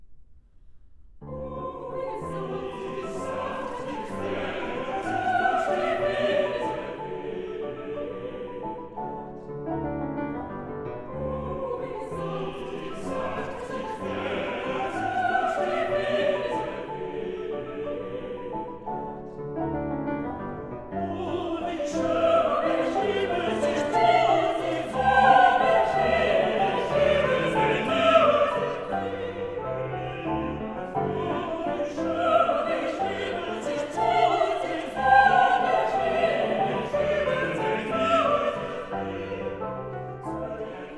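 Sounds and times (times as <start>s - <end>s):
vocal quartet singing waltzes: 1.3s - 40.9s.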